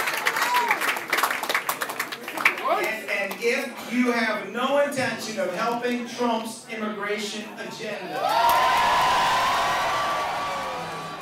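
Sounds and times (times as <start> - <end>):
enthusiastic crowd cheering: 0.0 - 2.4, 8.1 - 11.2
speech: 3.4 - 9.4.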